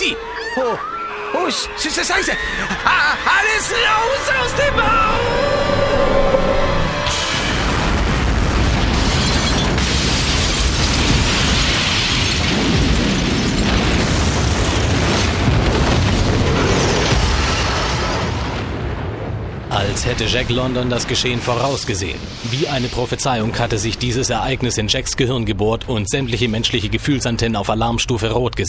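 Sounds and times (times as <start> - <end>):
speech: 0.1 - 6.7, 20.0 - 28.6
laughter: 2.3 - 3.4
explosion blowing up a building: 3.5 - 27.0
rumbling and crackling debris: 6.9 - 27.7.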